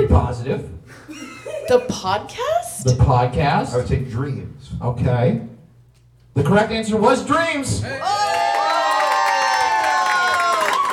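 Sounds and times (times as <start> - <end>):
speech: 0.2 - 5.5, 6.4 - 8.4
audience cheering at a live Halloween comedy show recorded in Hollywood: 7.9 - 10.9.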